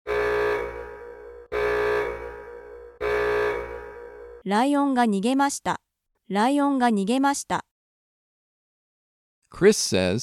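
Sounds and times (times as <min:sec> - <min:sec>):
warning siren over a loudspeaker: 0:00.1 - 0:04.4
speech: 0:04.4 - 0:07.7, 0:09.5 - 0:10.2.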